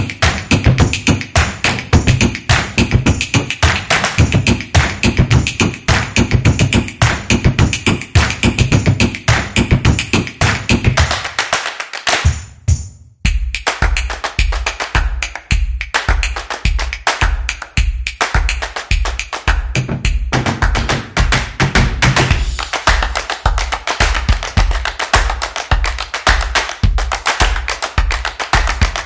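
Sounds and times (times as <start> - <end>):
energetic claps as street percussion: 0.0 - 12.5, 13.3 - 29.0.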